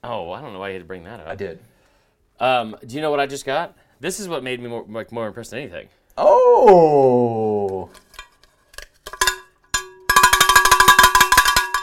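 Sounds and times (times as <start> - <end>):
speech: 0.0 - 1.8, 2.4 - 8.0
short vocal exclamation: 6.2 - 8.0
cowbell being rung: 9.2 - 11.8.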